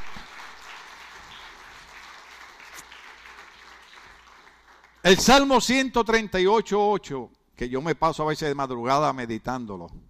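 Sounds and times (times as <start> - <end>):
audience applause: 0.0 - 5.1
speech: 5.1 - 10.0.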